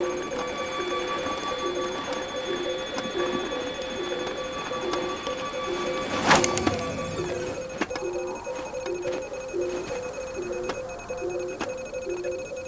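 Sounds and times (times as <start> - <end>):
synth pad: 0.0 - 12.6.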